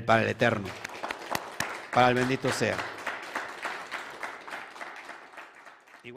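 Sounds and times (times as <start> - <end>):
speech: 0.0 - 0.9, 2.0 - 3.0
audience applause: 0.4 - 6.1.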